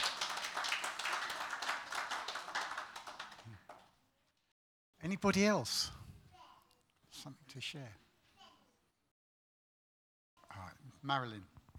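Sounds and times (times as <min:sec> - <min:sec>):
small audience clapping: 0:00.0 - 0:04.0
speech: 0:05.0 - 0:06.0, 0:07.2 - 0:08.0, 0:11.0 - 0:11.6.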